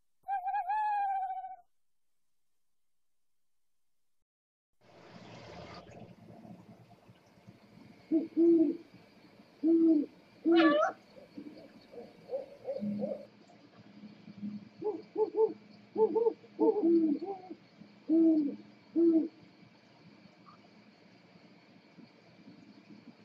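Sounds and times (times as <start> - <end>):
scops owl hooting: 0.2 - 1.6, 8.0 - 8.9, 9.6 - 13.3, 14.4 - 19.4.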